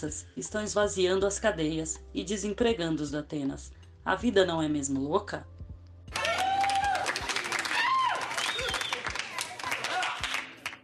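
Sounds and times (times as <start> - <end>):
speech: 0.0 - 5.5
applause sound effect: 6.1 - 10.8.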